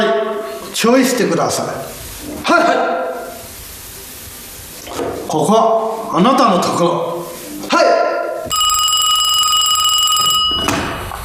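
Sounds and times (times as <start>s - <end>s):
speech: 0.7s - 2.9s, 5.3s - 7.1s, 7.7s - 8.0s
telephone ringing: 8.5s - 11.0s.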